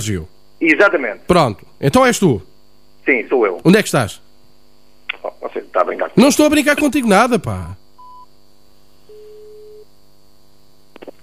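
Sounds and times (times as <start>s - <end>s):
speech: 0.0s - 4.2s, 5.2s - 7.8s
faint electrical hum: 0.0s - 11.2s
phone line tone after a dropped call: 8.0s - 8.3s, 9.0s - 9.9s.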